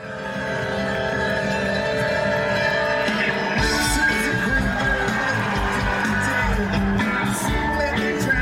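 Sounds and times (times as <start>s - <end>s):
audience cheering and whooping: 0.1s - 8.4s.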